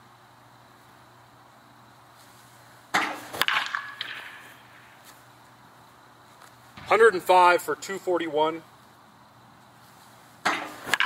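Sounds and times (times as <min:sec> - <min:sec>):
wooden baseball bat hitting a ball in a distance-hitting test: 0:02.9 - 0:04.6, 0:10.4 - 0:11.0
speech: 0:06.9 - 0:08.7.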